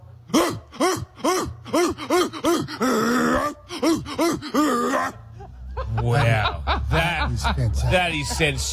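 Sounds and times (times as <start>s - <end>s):
person imitating a dog: 0.3s - 5.2s
raspy wheezing breath: 0.8s - 4.9s
laughter: 3.8s - 8.7s
speech: 7.6s - 8.7s.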